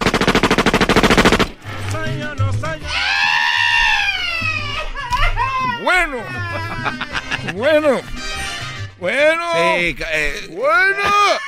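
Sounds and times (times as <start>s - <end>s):
machine-gun fire in a comedy skit: 0.0s - 1.6s
long shrill cry: 2.9s - 6.8s, 11.0s - 11.4s
laughter: 4.1s - 8.2s
speech: 7.6s - 8.2s, 9.0s - 11.4s.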